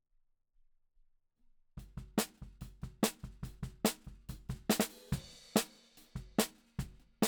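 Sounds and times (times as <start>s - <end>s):
snare drum: 1.8s - 7.2s.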